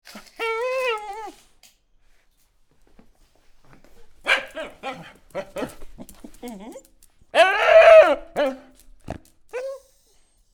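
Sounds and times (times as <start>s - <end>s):
dog barking: 4.3s - 6.1s, 7.4s - 8.7s.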